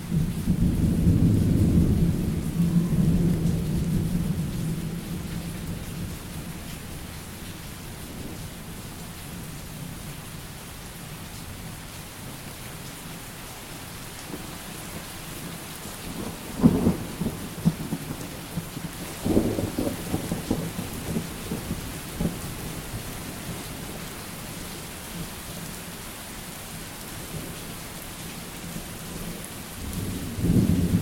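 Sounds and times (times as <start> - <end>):
thunder: 0.1 - 5.8, 16.1 - 22.5, 29.9 - 31.0.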